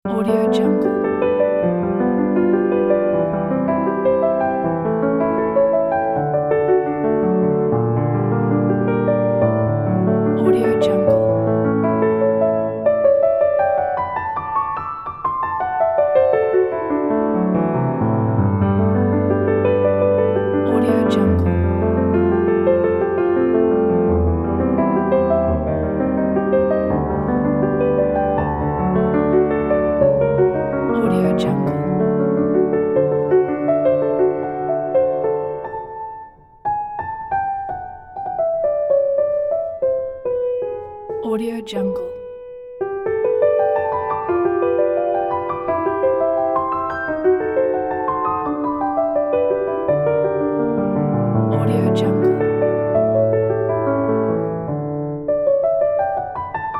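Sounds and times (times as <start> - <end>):
elegant classical piano: 0.0 - 56.7.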